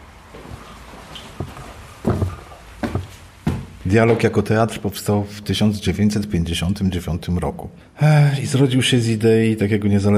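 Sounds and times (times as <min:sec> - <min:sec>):
heavy footsteps walking up stairs: 0:00.2 - 0:04.4
speech: 0:03.9 - 0:10.1.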